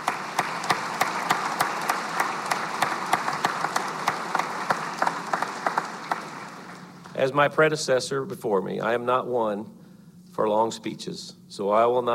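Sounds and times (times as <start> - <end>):
applause in a legislative chamber: 0.0 - 7.2
speech: 7.2 - 9.8, 10.4 - 12.1.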